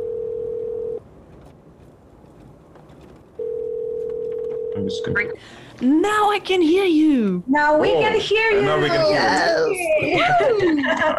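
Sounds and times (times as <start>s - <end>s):
phone ringback tone: 0.0s - 1.0s, 3.4s - 5.4s
speech: 4.8s - 11.1s
laughter: 8.9s - 11.1s.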